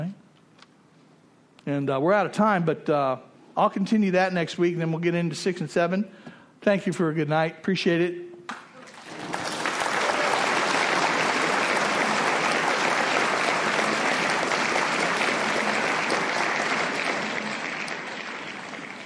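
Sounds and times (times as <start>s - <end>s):
speech: 1.6s - 8.6s
crowd applauding: 8.5s - 19.0s.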